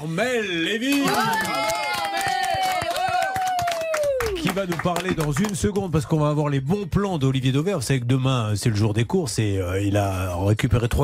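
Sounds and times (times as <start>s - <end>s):
speech: 0.0s - 1.8s, 4.6s - 11.0s
audience applause: 0.9s - 6.0s.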